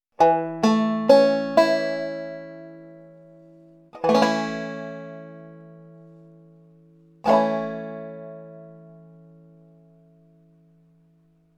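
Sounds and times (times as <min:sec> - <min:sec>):
banjo barre chord in A major: 0:00.2 - 0:11.5.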